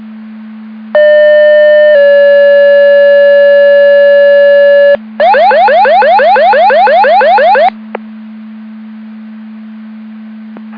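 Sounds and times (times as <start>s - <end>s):
siren: 1.0s - 7.8s.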